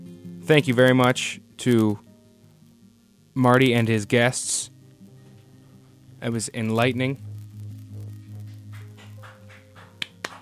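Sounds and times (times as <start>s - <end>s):
low electrical hum: 0.0s - 10.4s
speech: 0.5s - 2.1s, 3.4s - 4.7s, 6.2s - 7.3s
hand claps: 8.2s - 10.4s.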